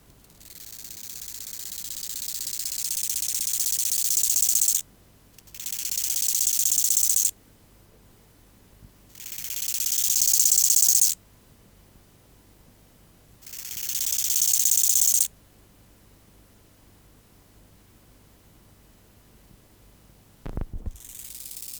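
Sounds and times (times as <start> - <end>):
bow-winged grasshopper song: 0.2 - 4.8, 5.4 - 7.3, 9.2 - 11.2, 13.4 - 15.3, 20.8 - 21.7.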